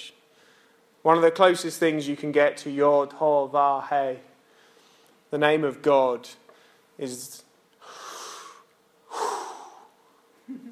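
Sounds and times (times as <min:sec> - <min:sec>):
breathing in and out: 0:00.2 - 0:00.9, 0:04.4 - 0:05.3, 0:06.5 - 0:07.0, 0:07.8 - 0:10.3
speech: 0:01.0 - 0:04.3, 0:05.3 - 0:06.4, 0:07.0 - 0:08.0.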